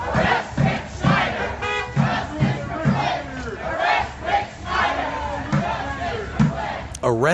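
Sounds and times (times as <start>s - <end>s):
protesters chanting outside a home: 0.0s - 7.3s.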